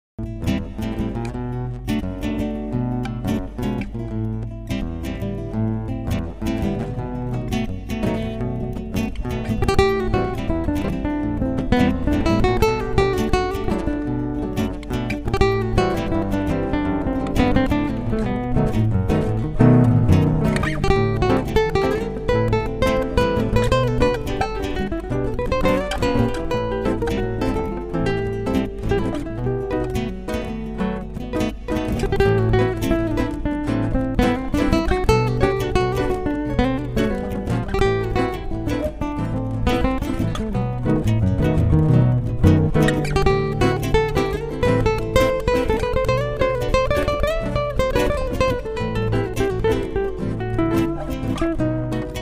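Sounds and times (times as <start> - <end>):
rumba music: 0.2 - 52.2.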